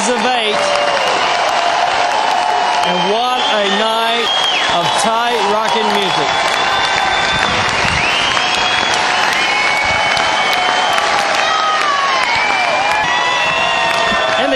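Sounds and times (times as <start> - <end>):
large concert crowd clapping: 0.0 - 14.5
shrill whistles: 2.8 - 5.0, 6.1 - 14.5.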